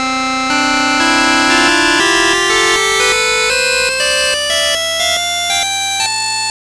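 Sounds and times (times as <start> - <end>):
music: 0.0 - 6.5.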